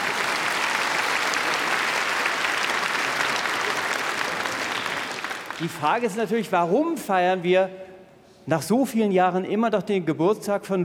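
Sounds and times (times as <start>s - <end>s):
audience applause: 0.0s - 6.2s
speech: 5.6s - 7.9s, 8.5s - 10.8s.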